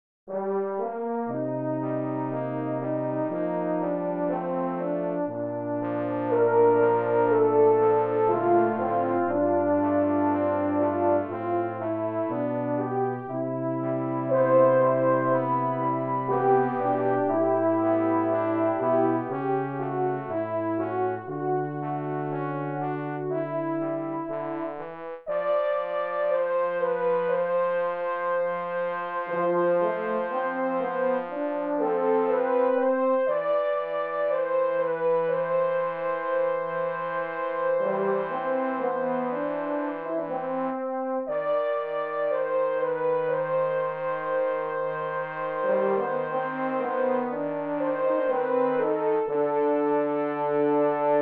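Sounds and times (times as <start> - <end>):
brass quintet playing a short love theme: 0.3 - 51.2.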